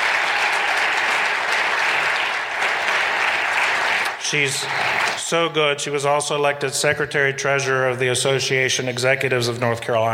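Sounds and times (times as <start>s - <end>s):
audience applause: 0.0s - 5.3s
speech: 4.3s - 10.1s.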